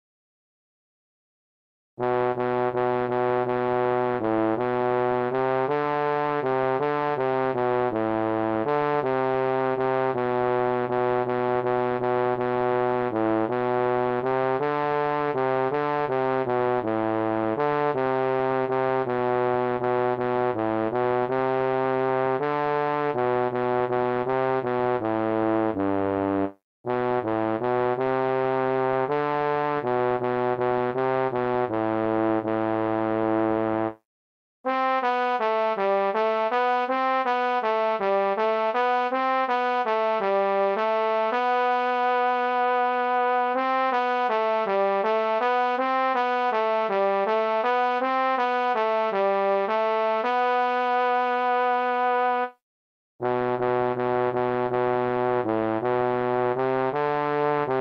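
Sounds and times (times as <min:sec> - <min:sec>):
national anthem on trombone: 0:02.0 - 0:34.0, 0:34.7 - 0:52.6, 0:53.2 - 0:57.7.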